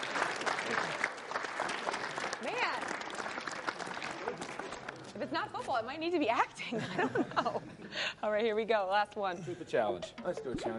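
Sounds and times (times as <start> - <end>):
small group applauding at a lighthearted video challenge: 0.0 - 5.2
speech: 5.3 - 10.7.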